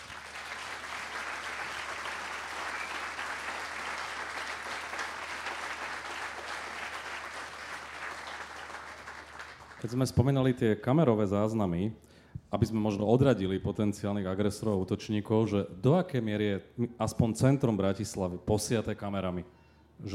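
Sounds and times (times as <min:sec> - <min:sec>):
audience applause: 0:00.0 - 0:09.9
speech: 0:09.8 - 0:20.1.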